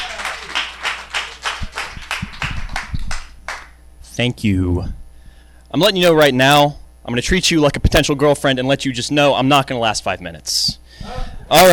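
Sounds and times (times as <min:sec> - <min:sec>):
audience clapping and applause: 0:00.0 - 0:03.8
speech: 0:04.2 - 0:05.0, 0:05.7 - 0:11.7.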